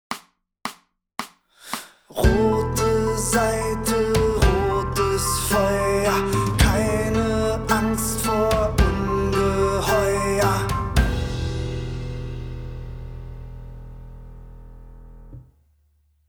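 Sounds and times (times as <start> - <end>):
guitar lesson playing: 2.3 - 15.2.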